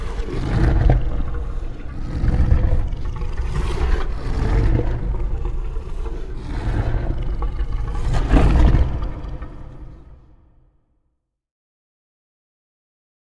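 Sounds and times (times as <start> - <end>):
scary monster roar: 0.0 - 10.4.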